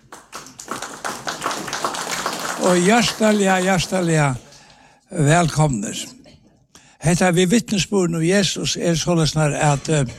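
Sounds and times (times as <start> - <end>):
audience clapping along rhythmically: 0.0 - 5.6
speech: 2.6 - 4.4, 5.1 - 6.1, 7.0 - 10.1.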